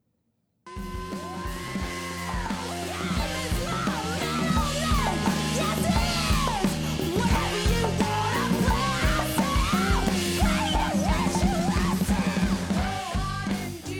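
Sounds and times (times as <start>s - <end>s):
distorted guitar: 0.7s - 13.9s
driving drums: 0.7s - 13.9s
shouted energetic vocals in a rock cover song: 1.0s - 13.9s.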